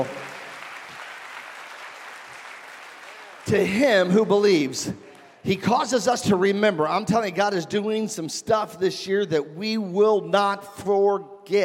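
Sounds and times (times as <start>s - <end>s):
congregation clapping in praise at a church service: 0.0s - 5.4s
speech: 3.4s - 11.6s.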